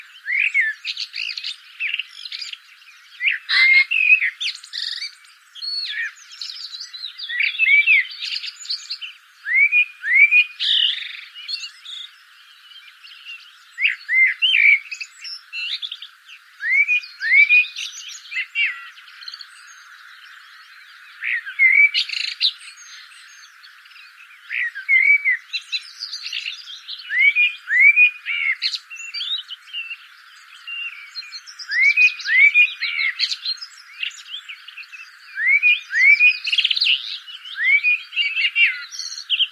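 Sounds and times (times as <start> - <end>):
Common blackbird song: 0.0 - 39.5
other birds chirping: 0.0 - 39.5.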